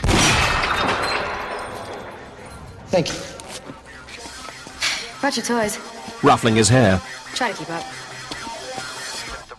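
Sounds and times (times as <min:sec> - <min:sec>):
gunshot breaking a chain in an action film: 0:00.0 - 0:01.4
speech: 0:02.9 - 0:03.3, 0:05.2 - 0:08.1.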